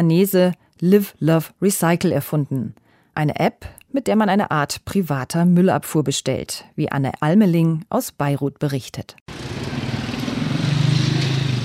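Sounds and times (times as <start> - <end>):
speech: 0.0 - 9.8
motor scooter engine accelerating in city traffic in Beirut: 9.3 - 11.6
street noise in Beirut: 9.3 - 11.6.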